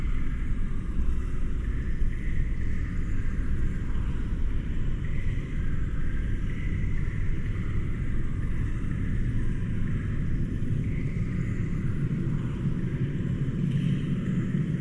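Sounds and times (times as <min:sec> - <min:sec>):
dark eerie horror dungeon ambience: 0:00.0 - 0:14.7.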